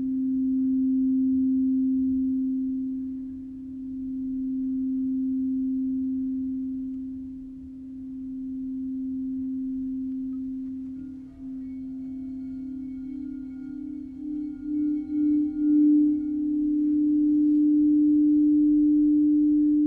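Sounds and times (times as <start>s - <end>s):
crystal bowl humming a low tone: 0.0s - 19.8s
faint high ringing chimes: 5.5s - 19.8s.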